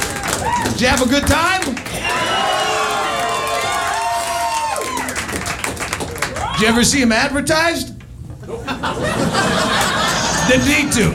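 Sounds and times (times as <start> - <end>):
crowd cheering and whooping: 0.0 - 1.0, 1.8 - 6.8, 9.0 - 10.9
audience applause: 0.0 - 6.6
speech: 0.8 - 2.4, 6.6 - 7.9, 8.5 - 9.9, 10.5 - 11.1
laughter: 8.4 - 11.1.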